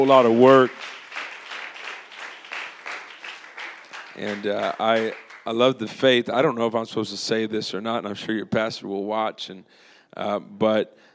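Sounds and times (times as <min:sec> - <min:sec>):
speech: 0:00.0 - 0:00.8, 0:04.2 - 0:11.1
audience applause: 0:00.0 - 0:05.7.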